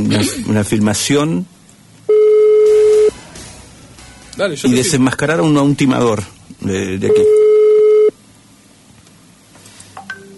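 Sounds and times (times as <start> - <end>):
speech: 0.0 - 1.5, 4.4 - 7.4
telephone tone on an outgoing call: 2.1 - 3.2, 7.1 - 8.2.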